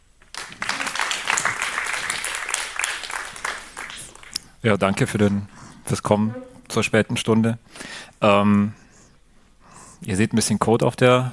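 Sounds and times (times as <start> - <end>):
audience applause: 0.3 - 4.4
speech: 4.6 - 8.8, 10.0 - 11.3.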